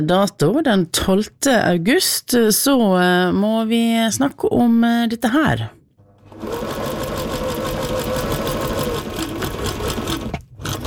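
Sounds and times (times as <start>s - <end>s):
speech: 0.0s - 5.8s, 6.4s - 6.9s
sewing machine running: 6.2s - 10.8s.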